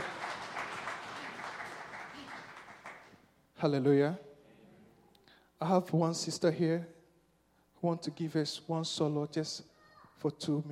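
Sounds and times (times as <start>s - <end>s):
audience clapping: 0.0s - 3.3s
speech: 3.6s - 4.3s, 5.6s - 7.0s, 7.8s - 10.6s.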